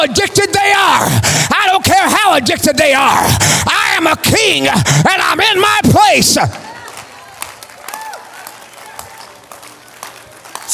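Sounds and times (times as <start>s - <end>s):
speech: 0.0s - 6.6s
audience clapping hands: 5.9s - 10.7s.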